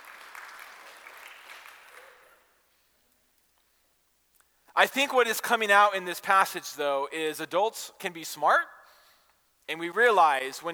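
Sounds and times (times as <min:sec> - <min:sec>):
audience applause: 0:00.0 - 0:02.5
speech: 0:04.8 - 0:08.8, 0:09.7 - 0:10.7.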